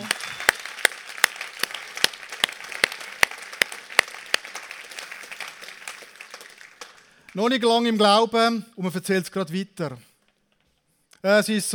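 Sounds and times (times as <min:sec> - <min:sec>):
applause: 0:00.0 - 0:07.6
speech: 0:07.4 - 0:10.1, 0:11.2 - 0:11.7.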